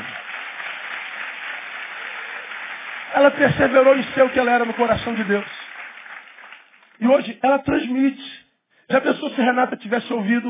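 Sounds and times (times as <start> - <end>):
audience applauding: 0.0 - 7.0
speech: 3.1 - 5.6, 7.0 - 10.4.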